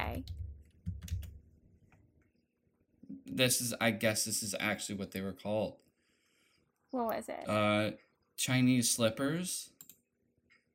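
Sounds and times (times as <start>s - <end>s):
speech: 0.2s - 0.4s, 3.4s - 5.8s, 6.9s - 9.8s
keyboard typing to search Google: 0.2s - 1.4s, 9.8s - 10.1s.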